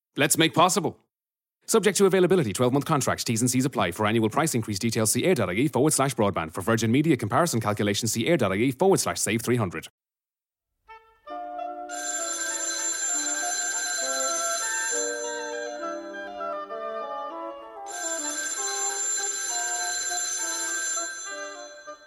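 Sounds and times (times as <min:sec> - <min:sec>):
speech: 0:00.2 - 0:01.1, 0:01.7 - 0:10.0
telephone ringing: 0:11.9 - 0:16.4, 0:17.9 - 0:22.0.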